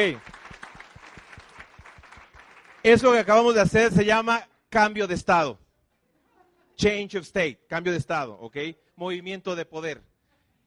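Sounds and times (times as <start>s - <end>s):
speech: 0.0s - 0.4s, 2.8s - 5.6s, 6.8s - 10.1s
audience applause: 0.0s - 3.3s.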